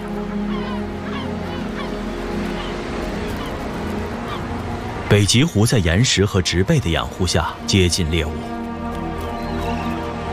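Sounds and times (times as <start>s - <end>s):
seagull calls at cliff nest: 0.0s - 4.6s, 9.2s - 10.3s
speech: 5.1s - 8.6s.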